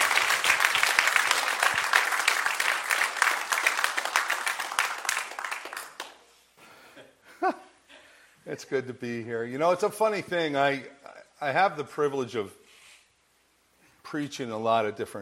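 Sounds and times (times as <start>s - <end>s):
audience applause: 0.0s - 6.2s
speech: 8.5s - 12.6s, 14.1s - 15.2s.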